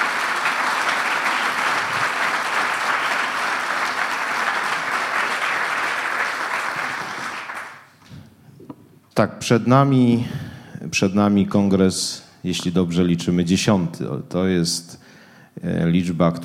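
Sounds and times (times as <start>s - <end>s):
audience applause: 0.0s - 7.9s
speech: 9.2s - 10.4s, 11.0s - 15.0s, 15.6s - 16.4s.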